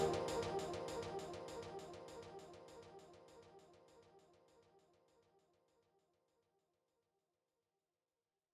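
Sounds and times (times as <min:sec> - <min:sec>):
instrumental music: 0:00.0 - 0:01.8.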